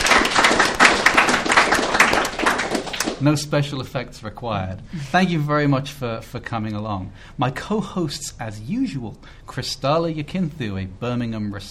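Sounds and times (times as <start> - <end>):
audience round of applause: 0.0 - 3.2
speech: 3.2 - 11.7.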